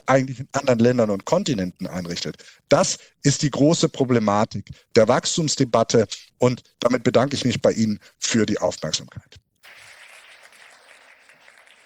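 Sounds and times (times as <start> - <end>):
speech: 0.0 - 9.9
audience clapping: 9.9 - 11.8.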